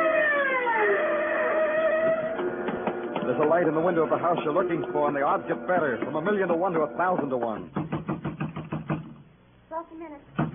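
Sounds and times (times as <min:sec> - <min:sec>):
siren of a speeding car in the city: 0:00.0 - 0:02.7
speech: 0:03.4 - 0:07.9, 0:09.8 - 0:10.5.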